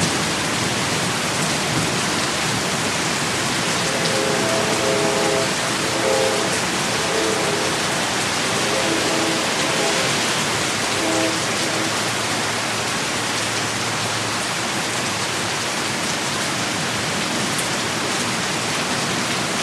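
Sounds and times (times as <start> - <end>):
thunderstorm: 0.0 - 13.2
heavy rain in a storm: 0.0 - 19.6.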